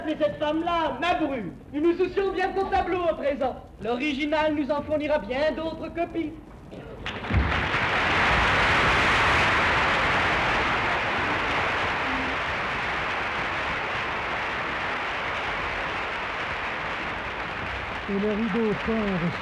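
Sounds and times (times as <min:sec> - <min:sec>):
speech: 0:00.1 - 0:06.9, 0:18.1 - 0:19.4
theatre audience applauding: 0:07.0 - 0:19.4.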